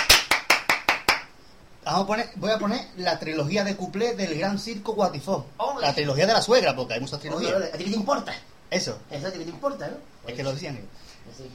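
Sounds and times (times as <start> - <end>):
applause: 0.0 - 1.3
speech: 1.8 - 11.5.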